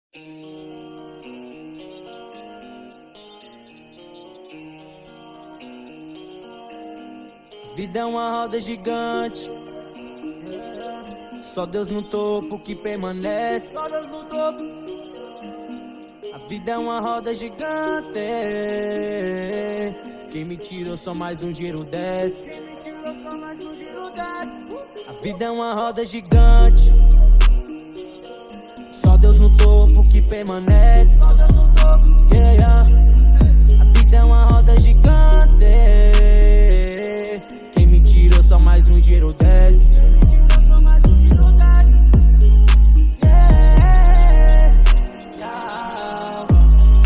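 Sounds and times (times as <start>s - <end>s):
deep bass: 26.4s - 27.6s, 29.1s - 36.8s, 37.8s - 45.1s, 46.5s - 47.0s.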